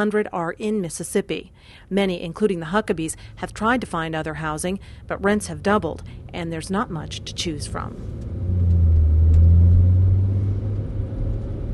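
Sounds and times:
speech: 0.0 - 8.3
car driving past apartment buildings: 3.1 - 11.7.

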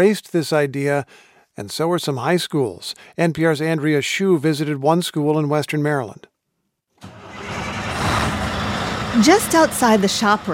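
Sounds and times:
speech: 0.0 - 6.3, 9.2 - 10.5
white Volvo truck engine starting outside a school shop room: 7.0 - 10.5.

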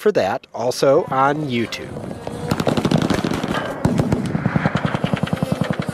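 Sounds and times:
speech: 0.0 - 2.1
rapid gunfire at a drone on a gun range: 1.9 - 5.9.

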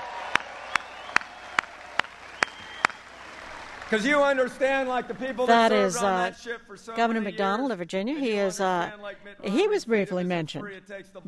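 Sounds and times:
hands clapping: 0.0 - 5.2
speech: 3.9 - 11.2.

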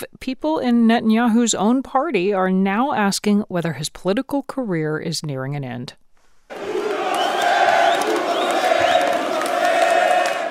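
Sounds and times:
speech: 0.0 - 6.7
Netanyahu supporters cheering on election night: 6.5 - 10.4.

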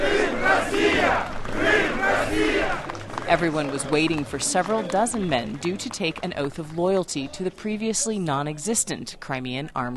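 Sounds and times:
self-defense troops chanting a slogan: 0.0 - 2.9
self-defense troops applauding: 0.0 - 8.7
speech: 3.3 - 9.9.

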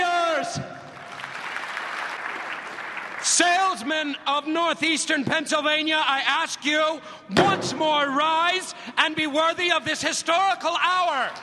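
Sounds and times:
audience of salesmen at a convention applauding wildly in a film scene: 0.8 - 3.7
speech: 3.8 - 11.4.

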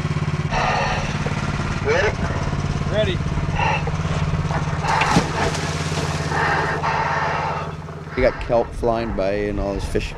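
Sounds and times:
diver's air compressor running on a boat: 0.0 - 10.1
speech: 3.0 - 3.8, 8.2 - 10.1.

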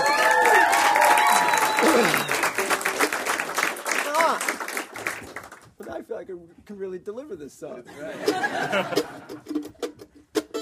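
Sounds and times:
audience applause welcoming a performer: 0.0 - 5.8
speech: 6.7 - 9.7
laughter: 7.9 - 9.5.

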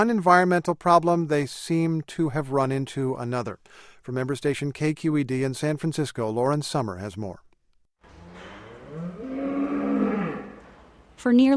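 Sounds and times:
speech: 0.0 - 7.4, 11.2 - 11.5
dairy cow mooing in a freestall barn on a California Central Valley farm: 8.1 - 11.0.

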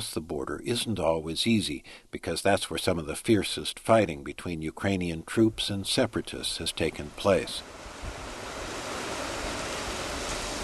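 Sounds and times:
speech: 0.0 - 8.2
wind at a Ukrainian border post: 0.0 - 10.6
drenching rain at a Ukrainian border post: 6.5 - 10.6.

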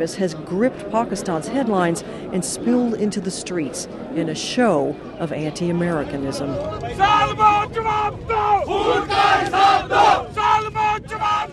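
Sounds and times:
speech: 0.0 - 11.5
demonstrators chanting slogans: 7.0 - 11.5.

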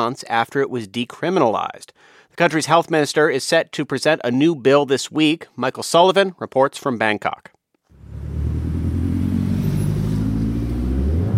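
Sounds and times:
speech: 0.0 - 7.6
vehicle engine revving: 7.9 - 11.3
road traffic rumble: 8.0 - 11.3.

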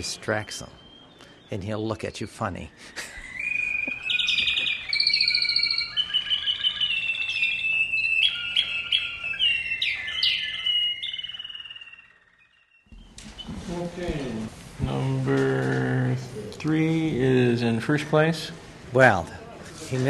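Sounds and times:
speech: 0.0 - 0.8, 1.5 - 3.1, 13.8 - 20.0
songbird singing in a bird song competition: 0.0 - 14.4, 16.7 - 18.1.

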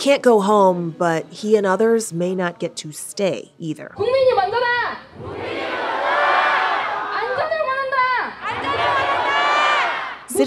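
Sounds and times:
speech: 0.0 - 5.6
crowd of demonstrators chanting in the street: 5.1 - 7.4, 8.4 - 10.4.

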